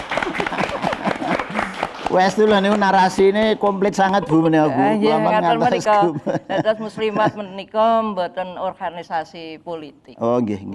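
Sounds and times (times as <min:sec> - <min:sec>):
laughter: 0:00.0 - 0:02.8, 0:03.6 - 0:07.6
applause: 0:00.0 - 0:03.6
speech: 0:02.1 - 0:10.7.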